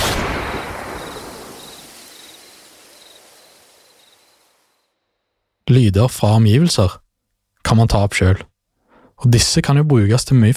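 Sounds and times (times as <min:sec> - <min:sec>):
gunshot: 0:00.0 - 0:04.4
speech: 0:05.7 - 0:07.0, 0:07.7 - 0:08.5, 0:09.2 - 0:10.5.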